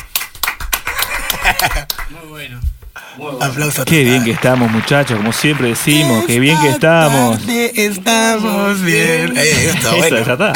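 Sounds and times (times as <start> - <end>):
applause sound effect: 0.0 - 2.2, 3.8 - 6.8
laughter: 0.8 - 2.1, 4.0 - 7.1, 9.5 - 10.5
speech: 1.6 - 10.5.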